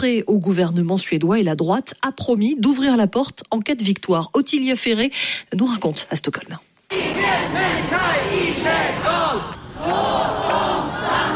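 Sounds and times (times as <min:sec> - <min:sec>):
speech: 0:00.0 - 0:10.4
protest crowd chanting slogans in central Stockholm: 0:06.9 - 0:11.3.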